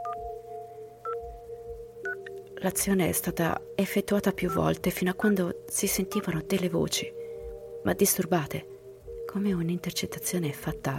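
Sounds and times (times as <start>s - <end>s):
telephone keypad tone beeps of a number being dialed: 0.0s - 0.3s, 1.0s - 1.2s, 2.0s - 2.3s, 4.4s - 5.4s, 6.1s - 6.4s
speech: 2.6s - 7.2s, 7.8s - 8.7s, 9.3s - 10.9s.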